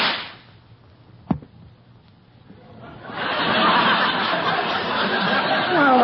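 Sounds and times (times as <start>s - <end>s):
gunshot fired at a rabbit on a rock: 0.0s - 0.5s
laughter: 2.6s - 6.0s.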